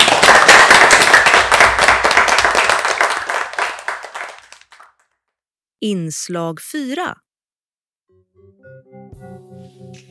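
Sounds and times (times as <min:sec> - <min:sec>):
audience applause: 0:00.0 - 0:05.0
speech: 0:05.8 - 0:07.2.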